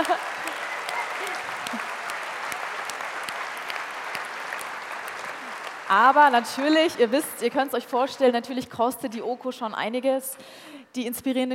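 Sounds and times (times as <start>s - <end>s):
crowd applauding: 0.0s - 7.8s
speech: 5.9s - 11.5s.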